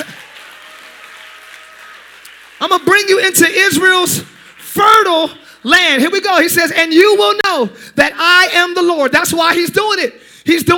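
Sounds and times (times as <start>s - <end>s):
audience clapping hands: 0.0s - 5.8s
speech: 2.6s - 10.7s.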